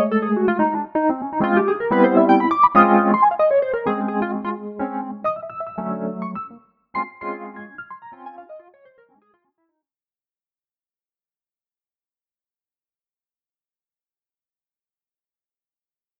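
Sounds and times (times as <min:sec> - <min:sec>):
chorus effect without amp: 0:00.0 - 0:08.6.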